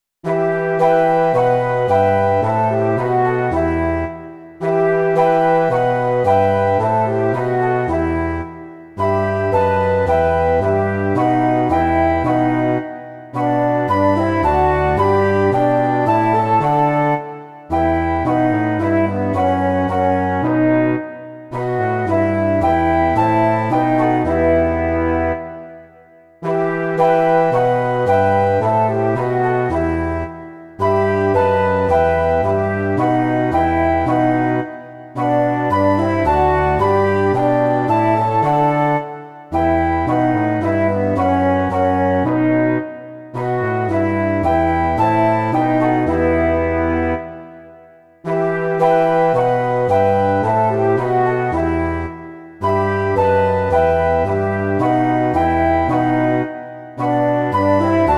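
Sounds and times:
two flutes, French horn and tuba: 0.2 - 58.1.

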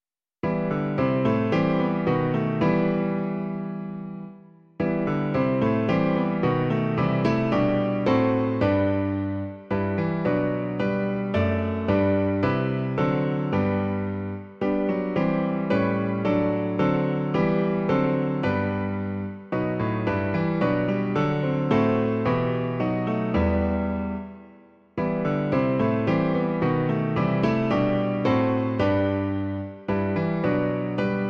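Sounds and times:
piano: 0.4 - 31.2.

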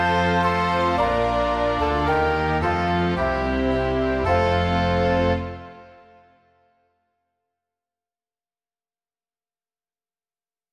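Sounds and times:
chamber orchestra: 0.0 - 6.3.

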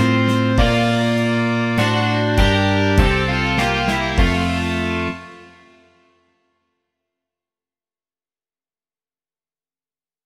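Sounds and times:
rock music: 0.0 - 5.8.

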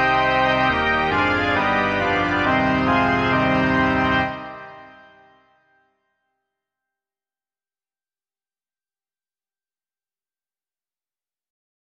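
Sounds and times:
organ: 0.0 - 5.4.

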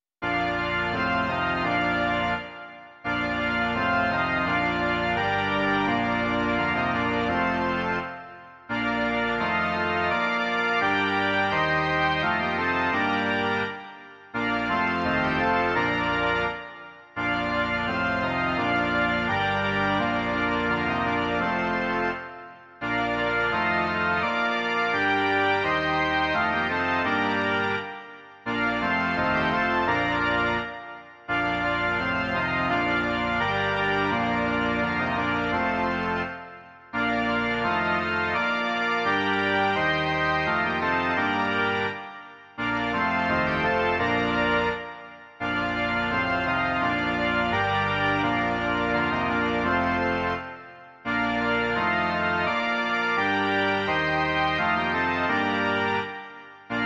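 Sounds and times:
organ: 0.0 - 56.8.

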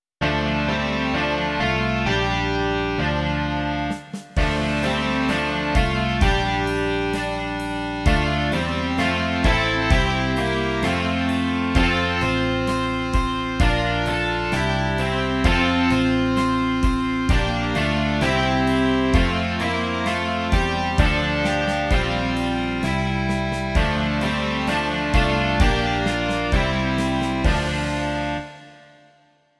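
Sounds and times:
rock music: 0.2 - 28.8.

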